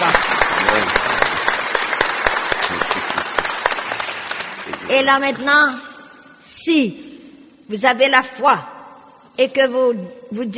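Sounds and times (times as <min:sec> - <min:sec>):
audience applause: 0:00.0 - 0:05.5
speech: 0:05.0 - 0:05.9, 0:06.6 - 0:07.0, 0:07.7 - 0:08.7, 0:09.4 - 0:10.5.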